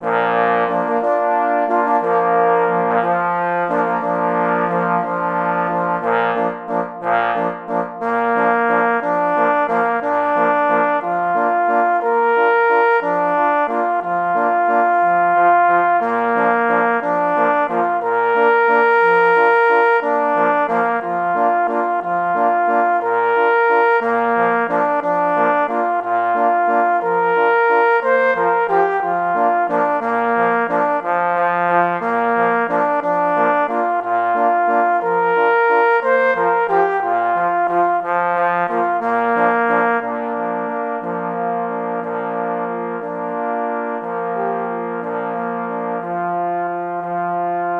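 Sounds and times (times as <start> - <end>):
parforce horn solo waltz accompanied by three parforce horns: 0.0 - 47.7.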